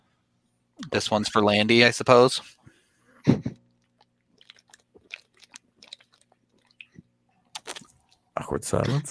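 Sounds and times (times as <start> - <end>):
speech: 0.9 - 2.6, 3.2 - 3.6, 8.5 - 9.0
chugging and swallowing a drink: 3.7 - 8.2.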